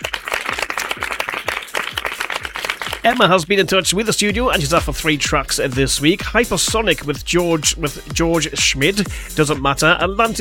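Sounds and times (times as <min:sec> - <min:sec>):
applause: 0:00.0 - 0:03.4
speech: 0:03.0 - 0:10.3.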